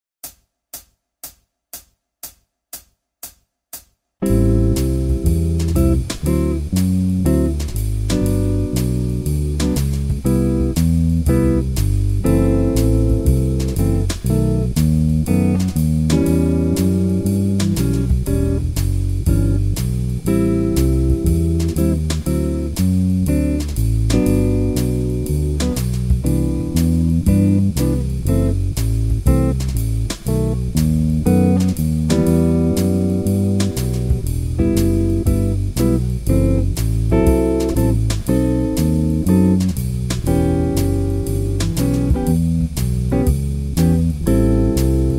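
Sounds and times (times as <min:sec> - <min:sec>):
120 bpm backing track: 0:04.2 - 0:45.1.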